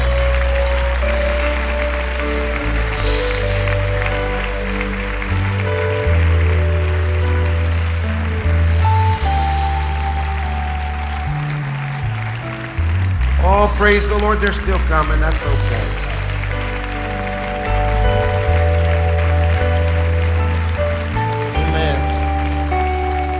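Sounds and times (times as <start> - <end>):
audience clapping: 0.0 - 23.3
speech: 13.8 - 16.0.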